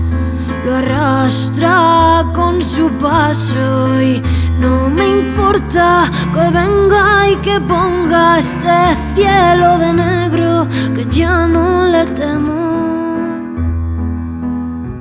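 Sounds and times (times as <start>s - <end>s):
piano: 0.0s - 14.9s
voice: 0.7s - 13.4s.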